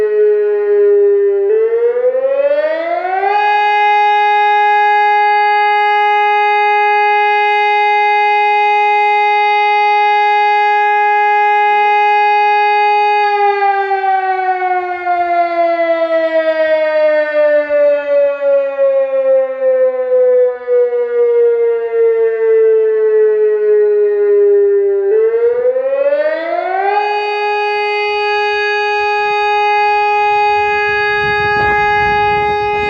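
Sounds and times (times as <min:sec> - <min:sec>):
electronic siren: 0:00.0 - 0:32.8.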